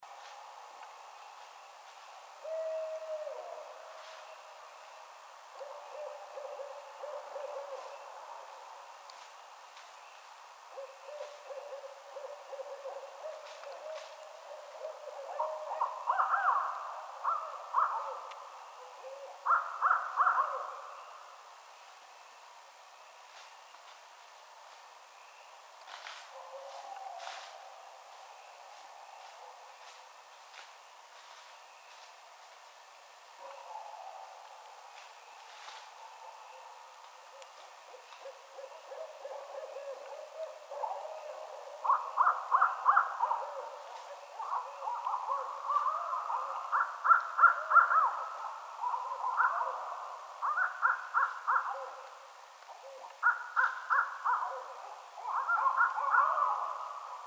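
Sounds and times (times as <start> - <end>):
Barred Owl calling: 10.8 - 21.0, 37.3 - 57.2.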